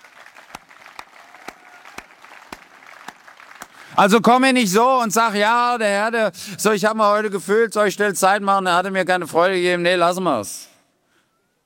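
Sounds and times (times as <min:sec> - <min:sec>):
audience applause: 0:00.0 - 0:04.3
speech: 0:04.0 - 0:10.7.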